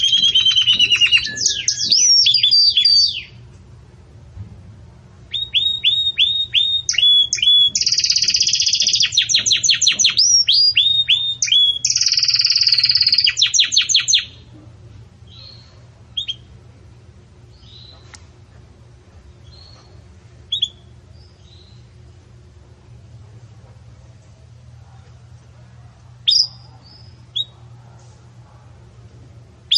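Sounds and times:
Belgian canary singing: 0.0s - 3.5s, 5.3s - 14.5s, 15.2s - 16.6s, 17.4s - 18.2s, 19.2s - 22.1s, 26.2s - 27.8s.

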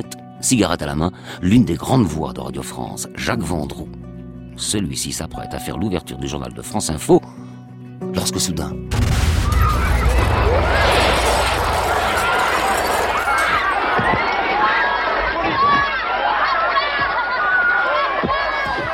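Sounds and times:
speech: 0.0s - 4.0s, 4.6s - 7.5s, 8.2s - 9.2s
stadium stand collapsing with a crash at Furiani stadium: 9.0s - 14.1s
stadium crowd noise: 9.4s - 18.9s.

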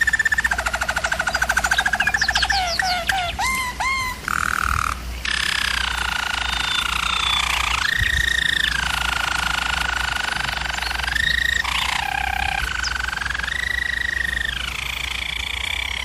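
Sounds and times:
German Roller canary rolling song: 0.0s - 16.0s.

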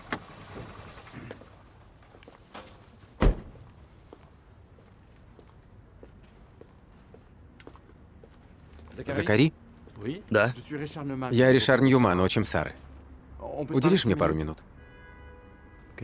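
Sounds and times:
sharp heavy thud like a car door shutting: 3.2s - 3.6s
footsteps of a person walking toward a man after getting out of a car: 3.6s - 9.0s, 12.5s - 13.2s
speech: 9.0s - 12.8s, 13.6s - 14.7s.

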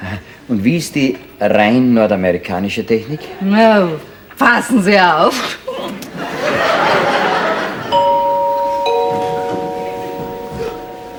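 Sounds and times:
speech: 0.5s - 5.9s
laughter: 5.7s - 8.2s
gong being struck: 7.9s - 11.1s.

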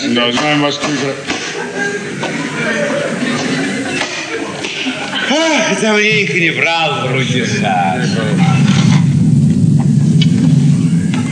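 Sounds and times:
speech: 0.0s - 3.2s, 5.3s - 8.5s
laughter: 0.9s - 8.7s
thunder: 5.9s - 11.3s.

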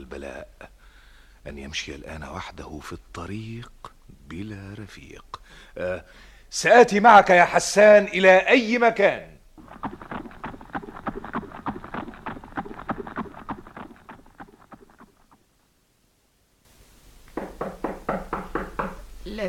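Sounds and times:
speech: 0.2s - 0.8s, 1.4s - 10.0s
knocking on a door: 17.4s - 19.1s.

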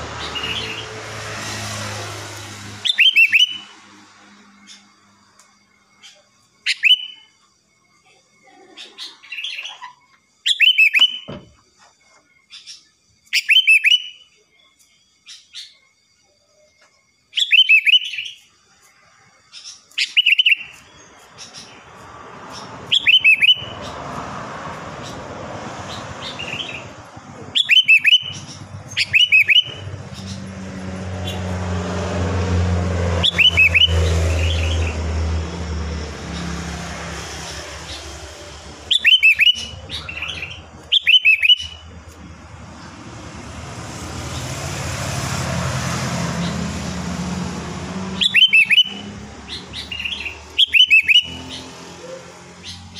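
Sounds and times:
vehicle noise: 0.0s - 7.2s, 17.5s - 52.9s
sooty-headed bulbul whistling: 2.8s - 3.8s, 6.7s - 7.3s, 10.5s - 11.4s, 13.4s - 14.2s, 22.5s - 24.0s, 25.9s - 30.5s, 33.2s - 36.6s, 37.2s - 42.0s, 48.1s - 52.9s.

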